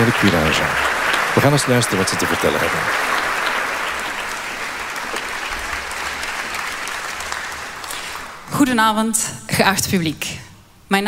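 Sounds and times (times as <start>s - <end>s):
speech: 0.0s - 3.2s, 8.6s - 11.0s
audience applause: 0.0s - 8.5s.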